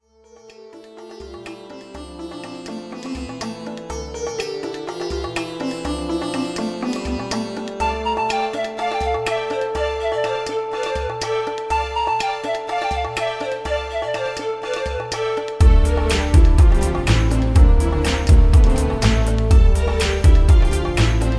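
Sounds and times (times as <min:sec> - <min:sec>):
oriental ethnic music: 0:00.0 - 0:21.3.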